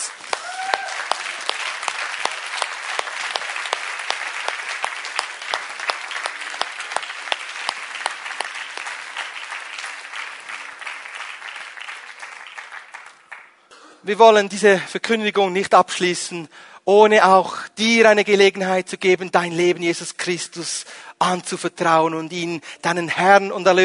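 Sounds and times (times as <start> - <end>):
audience applause: 0.0 - 13.6
speech: 14.1 - 23.8.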